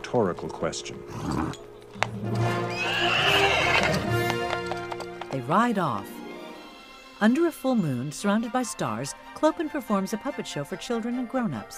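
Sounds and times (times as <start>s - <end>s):
speech: 0.1s - 3.2s, 5.5s - 6.2s, 7.2s - 11.7s
horse whinnying: 1.0s - 5.2s
horse stamping its hoof: 1.4s - 6.1s.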